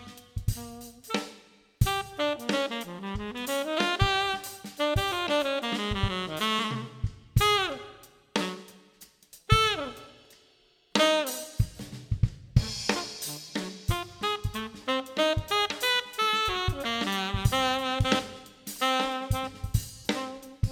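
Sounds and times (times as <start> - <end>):
weird funk music: 0.0 - 7.8, 9.5 - 10.0, 12.6 - 20.6
trumpet: 0.0 - 20.6.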